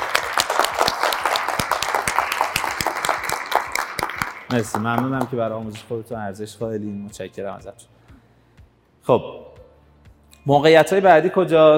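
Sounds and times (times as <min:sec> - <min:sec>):
audience applause: 0:00.0 - 0:05.4
speech: 0:04.5 - 0:08.0, 0:09.0 - 0:09.4, 0:10.4 - 0:11.7.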